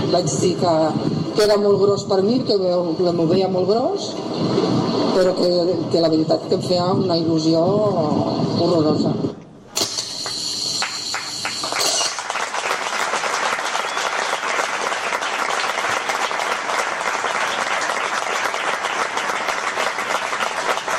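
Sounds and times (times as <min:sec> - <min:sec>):
speech: 0:00.1 - 0:09.4
loud applause from a large crowd: 0:10.8 - 0:20.9.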